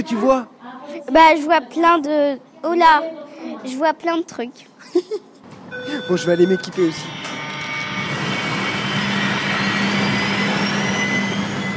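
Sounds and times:
speech: 0.0 - 7.3
thin whining tones: 5.7 - 11.7
jetpack takeoff jet-engine roar in a virtual-reality ride: 7.1 - 11.7.

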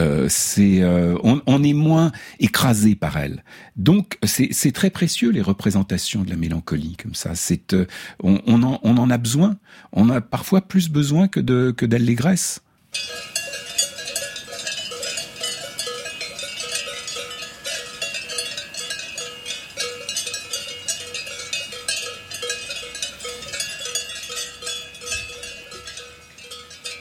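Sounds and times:
speech: 0.0 - 13.3
Swiss cow bells ringing: 12.9 - 27.0.

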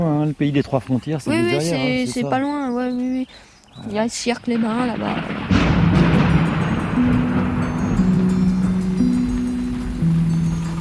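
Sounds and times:
speech: 0.0 - 6.1
light rain shower falling on dense forest trees: 3.6 - 10.7.

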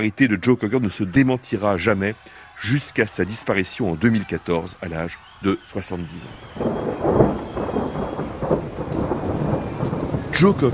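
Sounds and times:
speech: 0.0 - 6.8, 10.4 - 10.7
heavy downpour during a thunderstorm over an outdoor music festival: 6.0 - 10.7
deep rolling thunder: 6.3 - 10.7.

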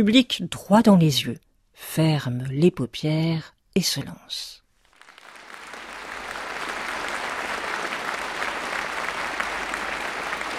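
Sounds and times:
speech: 0.0 - 4.6
enthusiastic concert applause: 4.9 - 10.5.

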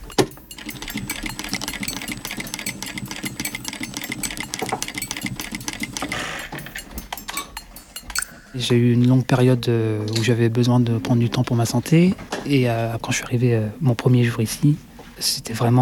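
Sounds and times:
sewing machine stitching a lining onto a zip: 0.0 - 8.2
speech: 8.6 - 15.8.

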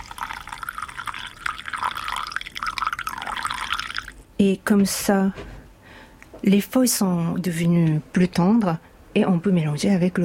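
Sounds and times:
tea being poured into a teapot: 0.0 - 4.2
speech: 4.4 - 5.5, 6.4 - 10.2.

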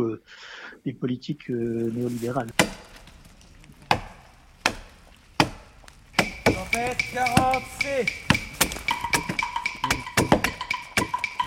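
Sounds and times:
speech: 0.0 - 3.0, 6.8 - 8.3
small hatchet chipping bark off tree: 2.5 - 3.1, 3.8 - 11.4.

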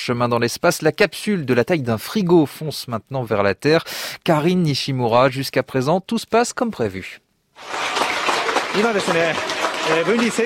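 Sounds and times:
speech: 0.0 - 8.0, 8.7 - 10.4
sustained applause in Hayabusa 2 mission control room: 7.6 - 10.4.

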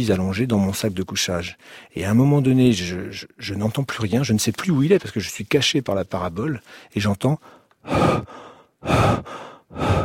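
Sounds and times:
speech: 0.0 - 10.0
lynx breathing into a microphone: 6.6 - 10.0.

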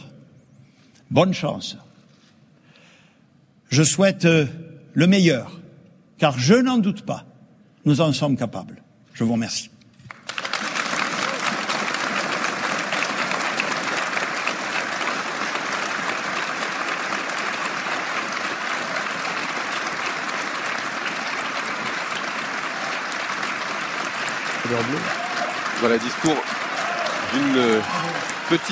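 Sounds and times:
speech: 1.1 - 1.9, 3.7 - 5.6, 6.2 - 9.8, 24.7 - 25.2, 25.8 - 26.6, 27.3 - 28.7
audience applause after a speech: 10.1 - 28.7.

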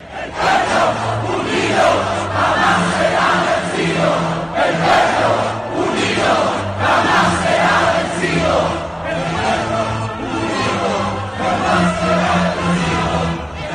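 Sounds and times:
Chilean protesters chanting a revolutionary protest anthem in street demonstrations: 0.0 - 13.7.

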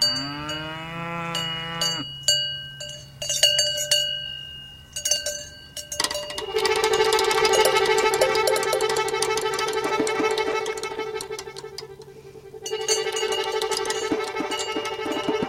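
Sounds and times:
cow mooing in a pasture: 0.0 - 2.1
cowbells clanking in a pasture: 0.0 - 15.4.

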